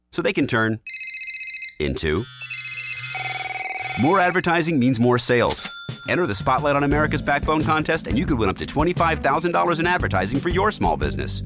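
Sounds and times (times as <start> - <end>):
speech: 0.2 - 0.9, 1.8 - 2.5, 4.0 - 11.4
short electronic telephone ringtone: 0.9 - 6.7.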